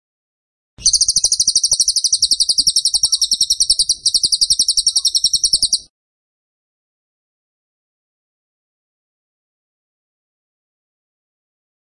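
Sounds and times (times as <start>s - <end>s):
bird rapid trill: 0.8s - 5.9s.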